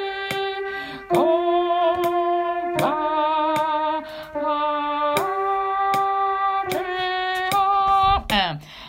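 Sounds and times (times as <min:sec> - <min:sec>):
alto singing: 0:00.0 - 0:08.4.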